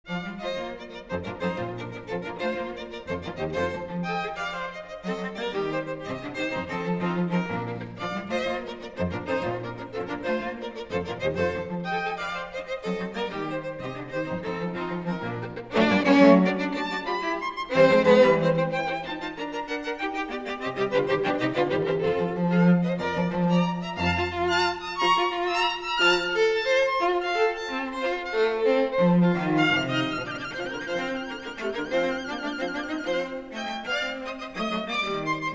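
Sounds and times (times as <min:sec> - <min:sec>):
string quartet in B flat: 0:00.0 - 0:35.5.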